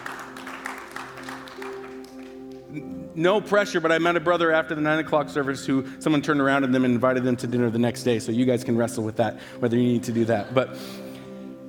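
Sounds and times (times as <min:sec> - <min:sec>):
audience clapping: 0:00.0 - 0:02.9
speech: 0:02.7 - 0:11.1.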